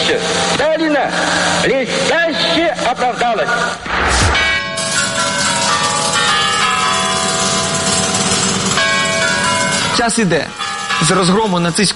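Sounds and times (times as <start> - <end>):
speech: 0.1 - 4.5, 10.0 - 11.9
Kremlin clock tower chimes: 4.7 - 11.9.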